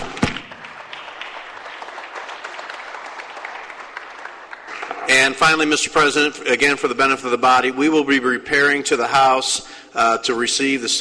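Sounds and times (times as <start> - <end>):
round of applause: 0.0 - 5.1
speech: 5.2 - 11.0.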